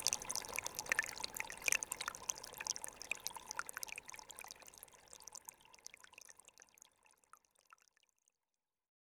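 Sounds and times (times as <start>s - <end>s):
small stream trickling: 0.0s - 8.0s.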